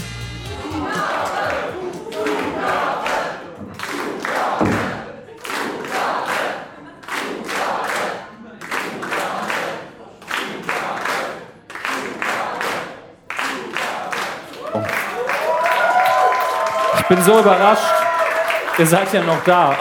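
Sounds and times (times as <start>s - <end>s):
late-night show audience calling out rhythmically for an encore: 0.0s - 19.8s
clapping: 1.5s - 4.7s, 5.4s - 19.8s
thuds: 4.6s - 5.0s
speech: 17.1s - 18.1s, 18.8s - 19.8s.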